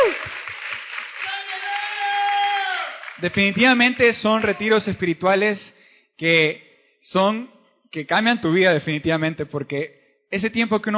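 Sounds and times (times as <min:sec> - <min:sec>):
audience applause: 0:00.0 - 0:04.7
speech: 0:03.2 - 0:10.9.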